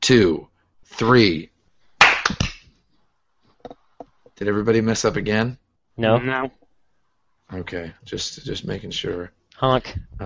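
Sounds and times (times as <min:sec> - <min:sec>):
speech: 0:00.0 - 0:01.5, 0:04.4 - 0:06.6, 0:07.5 - 0:10.2
group clapping: 0:02.0 - 0:02.7.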